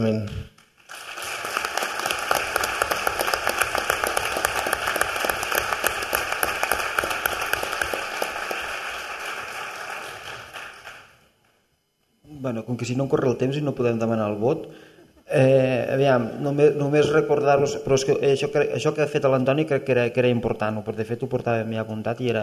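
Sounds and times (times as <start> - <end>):
speech: 0.0 - 0.5, 12.7 - 22.4
crowd applause at a council meeting: 0.8 - 11.2.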